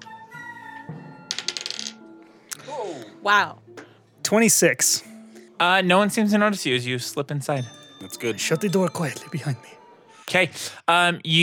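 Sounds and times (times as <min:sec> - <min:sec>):
dice rolling on a table: 0:01.3 - 0:02.0
speech: 0:02.8 - 0:03.6, 0:04.3 - 0:11.4.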